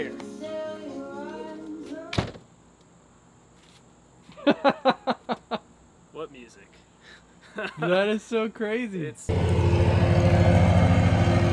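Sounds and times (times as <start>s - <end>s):
speech: 0.0s - 0.2s, 4.6s - 4.9s, 7.6s - 9.7s
lawn mower running outside: 9.3s - 11.5s.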